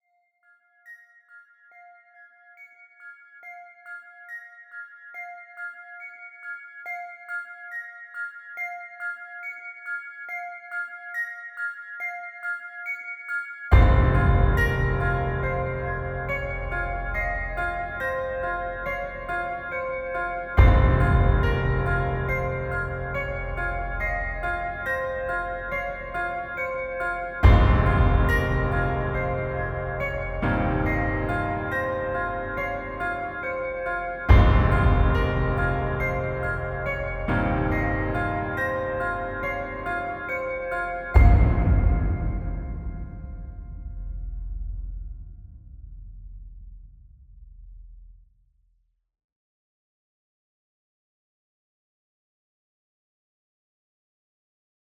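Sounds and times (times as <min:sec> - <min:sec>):
cinematic trailer music with bells: 0:13.7 - 0:47.4.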